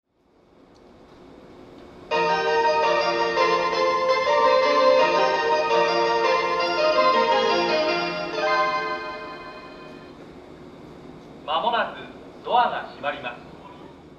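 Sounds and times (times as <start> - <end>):
melody: 2.1 - 10.2.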